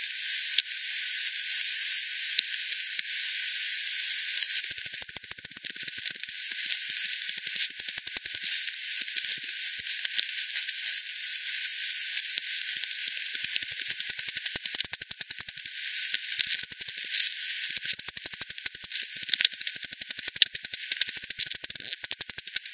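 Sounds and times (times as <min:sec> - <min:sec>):
constant hiss: 0:00.0 - 0:22.7
bat echolocation clicks: 0:04.4 - 0:10.8, 0:12.3 - 0:22.7.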